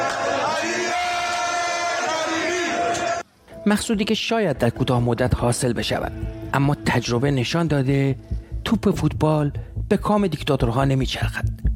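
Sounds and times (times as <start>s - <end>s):
football stadium crowd chanting: 0.0s - 3.2s
speech: 3.6s - 11.7s.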